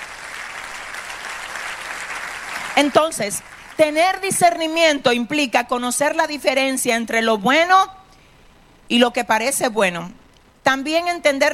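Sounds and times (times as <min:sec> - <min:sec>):
church congregation applause for the Lord: 0:00.0 - 0:04.2
speech: 0:02.8 - 0:08.0, 0:08.9 - 0:11.5.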